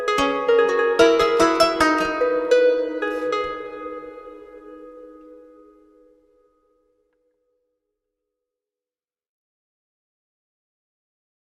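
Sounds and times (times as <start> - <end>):
medieval bardcore music: 0.0 - 6.3.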